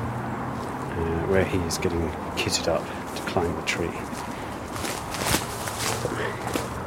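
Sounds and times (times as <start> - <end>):
speech: 1.0 - 4.3
footsteps walking down a steep slope in a Welsh forest: 2.7 - 6.8.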